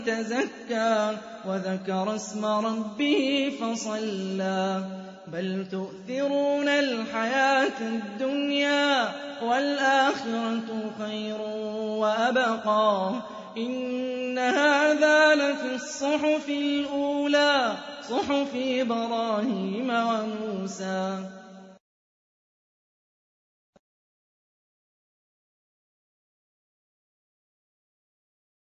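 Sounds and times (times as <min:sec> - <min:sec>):
Quran recitation: 0:00.0 - 0:21.8.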